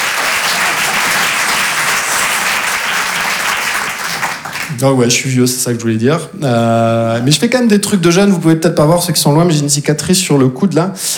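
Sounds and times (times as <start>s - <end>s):
audience applause: 0.0s - 4.8s
speech: 4.8s - 11.1s.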